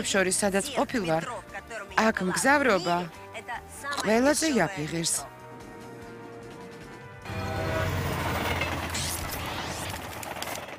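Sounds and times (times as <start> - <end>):
speech: 0.0 - 3.2, 3.8 - 5.3
Kyiv metro train rushing and rumbling: 6.8 - 10.7
rattling, clattering mechanical noise of metro train: 7.8 - 10.7.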